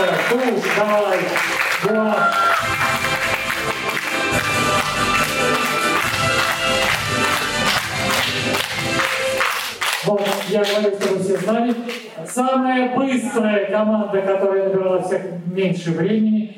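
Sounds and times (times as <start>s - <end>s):
speech: 0.0s - 3.1s, 10.5s - 16.5s
audience applause: 0.0s - 11.5s.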